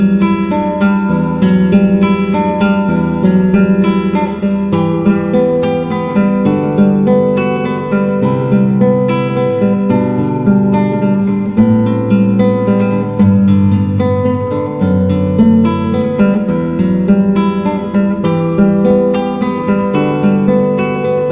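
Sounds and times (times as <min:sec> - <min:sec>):
guitar etude: 0:00.0 - 0:21.2.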